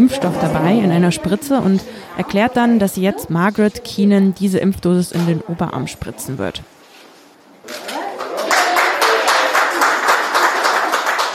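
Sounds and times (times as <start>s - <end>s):
speech: 0.0s - 6.8s
applause after first Covid vaccination: 7.8s - 11.3s.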